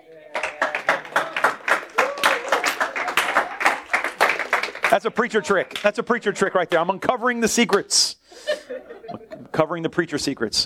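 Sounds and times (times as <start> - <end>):
audience hand clapping: 0.1 - 7.8
speech: 5.0 - 10.6
laughter: 8.3 - 9.6.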